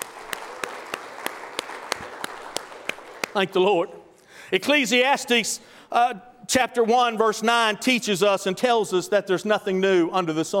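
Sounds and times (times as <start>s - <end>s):
audience clapping hands in praise: 0.0s - 3.8s
speech: 3.4s - 10.5s.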